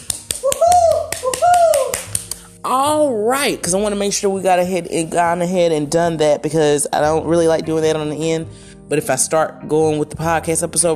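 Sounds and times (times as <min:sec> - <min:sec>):
few people clapping: 0:00.0 - 0:02.5
speech: 0:02.7 - 0:10.9.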